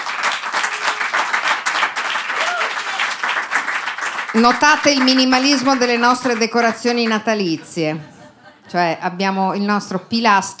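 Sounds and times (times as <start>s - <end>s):
applause: 0.0s - 7.4s
speech: 4.4s - 8.1s, 8.7s - 10.5s
laughter: 7.0s - 9.0s.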